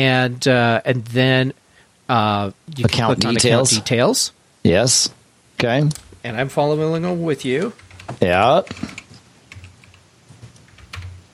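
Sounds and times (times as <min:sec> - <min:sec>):
speech: 0:00.0 - 0:09.0
typing on a computer keyboard: 0:07.6 - 0:10.0, 0:10.6 - 0:11.2.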